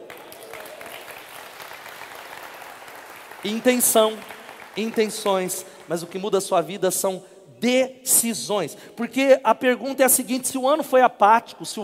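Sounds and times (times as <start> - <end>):
audience applauding: 0.0 - 6.2
speech: 3.4 - 11.8.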